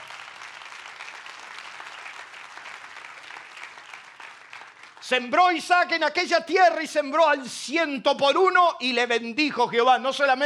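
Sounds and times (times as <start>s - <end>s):
crowd clapping: 0.0s - 5.9s
speech: 5.1s - 10.4s.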